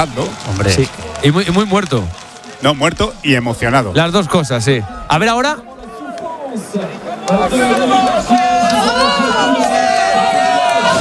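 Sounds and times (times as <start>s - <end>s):
speech: 0.0s - 5.7s, 6.5s - 9.6s
commentators talking: 0.0s - 11.0s
spectators cheering and chattering at a cycling race finish: 0.0s - 11.0s.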